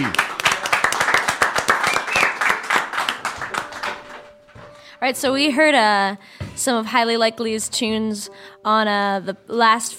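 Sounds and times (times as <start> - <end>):
audience clapping for a band: 0.0 - 4.3
speech: 5.0 - 9.9.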